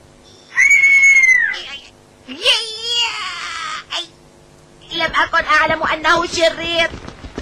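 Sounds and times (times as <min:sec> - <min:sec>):
caged bird whistling and squawking: 0:00.2 - 0:01.6
speech: 0:05.4 - 0:07.0.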